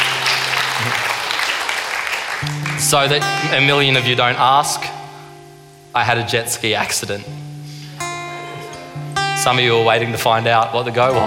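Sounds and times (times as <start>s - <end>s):
audience applause for a helper joining the speaker on stage: 0.0s - 3.4s
speech: 2.4s - 5.0s, 6.0s - 7.4s, 9.4s - 11.2s.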